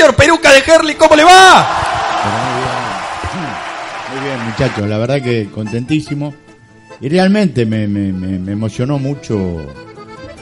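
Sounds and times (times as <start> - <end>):
speech: 0.1 - 2.6, 4.1 - 6.4, 7.0 - 9.9
applause and ovation: 1.6 - 4.9.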